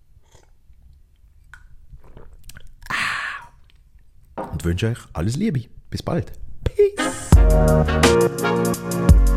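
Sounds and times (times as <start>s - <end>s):
person taking a sip of water: 0.0s - 4.0s
speech: 4.6s - 6.5s, 7.5s - 9.2s.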